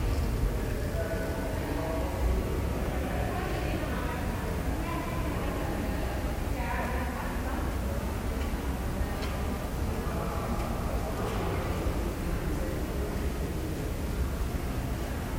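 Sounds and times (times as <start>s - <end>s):
courtyard ambience on a soundwalk: 0.0s - 15.3s.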